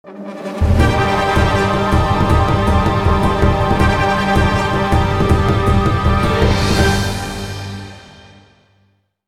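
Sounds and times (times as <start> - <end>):
grand background music: 0.1 - 8.6.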